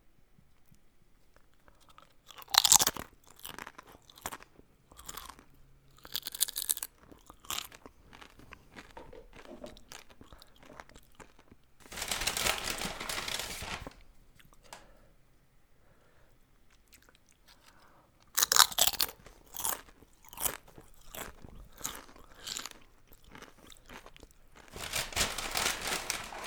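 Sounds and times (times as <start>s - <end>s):
tortilla chips dipped in queso crunched: 2.3s - 5.4s, 6.0s - 13.9s, 18.4s - 26.4s.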